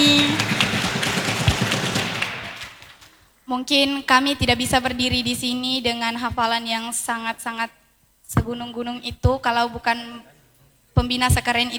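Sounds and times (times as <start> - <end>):
audience applause: 0.0 - 3.2
speech: 3.5 - 10.3, 11.0 - 11.7.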